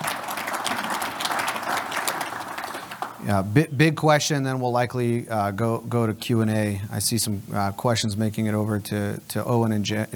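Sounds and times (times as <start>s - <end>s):
crowd applauding: 0.0s - 3.2s
speech: 3.2s - 10.1s.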